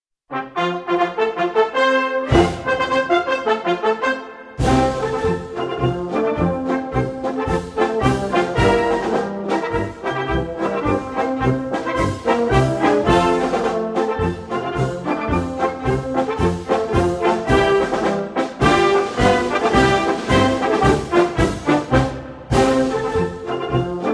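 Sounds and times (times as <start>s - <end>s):
march music: 0.3s - 24.1s.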